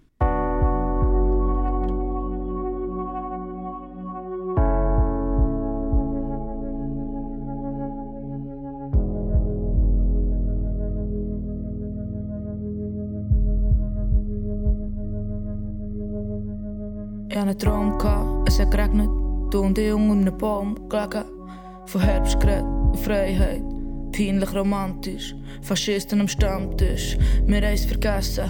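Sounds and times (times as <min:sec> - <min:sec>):
low pulsing bass thump: 0:00.2 - 0:02.3, 0:04.6 - 0:06.4, 0:09.0 - 0:11.0, 0:13.3 - 0:15.4, 0:17.6 - 0:19.0, 0:22.0 - 0:23.6, 0:26.4 - 0:27.8
bright synth chords in a pop song: 0:00.2 - 0:28.4
speech: 0:17.5 - 0:28.4.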